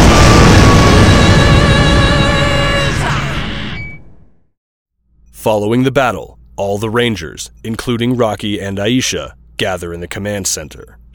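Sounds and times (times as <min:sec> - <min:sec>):
monster exploding in a Power Rangers battle: 0:00.0 - 0:03.8
speech: 0:05.4 - 0:11.1.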